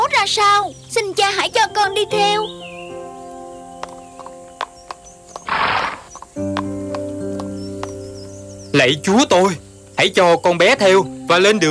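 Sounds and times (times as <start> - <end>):
speech: 0.2 - 2.7, 8.8 - 11.7
horse hooves clip-clopping: 3.2 - 8.7
horse whinnying: 5.4 - 6.2.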